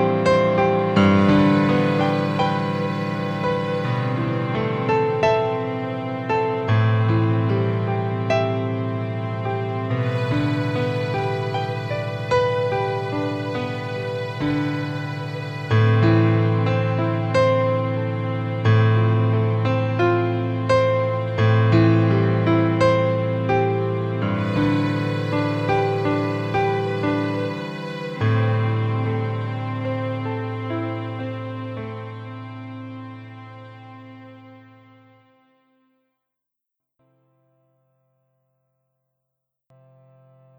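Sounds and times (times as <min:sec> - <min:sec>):
piano: 0:00.0 - 0:36.0, 0:39.7 - 0:40.5.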